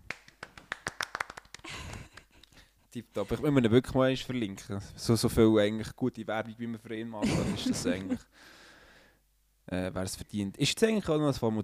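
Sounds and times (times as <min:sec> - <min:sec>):
hands clapping: 0:00.0 - 0:02.6
speech: 0:02.9 - 0:08.6, 0:09.7 - 0:11.6
laughter: 0:07.2 - 0:08.2.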